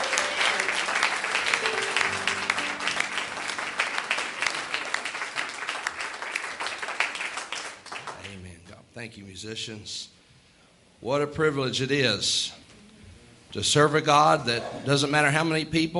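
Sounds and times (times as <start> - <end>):
church congregation clapping in praise of the Lord: 0.0 - 8.5
speech: 9.0 - 10.2, 11.0 - 12.6, 13.5 - 15.9.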